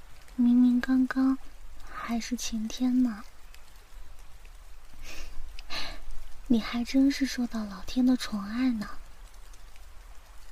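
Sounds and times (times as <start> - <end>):
rain falling: 0.0 - 10.5
speech: 0.4 - 1.5, 2.1 - 3.3, 6.5 - 9.0.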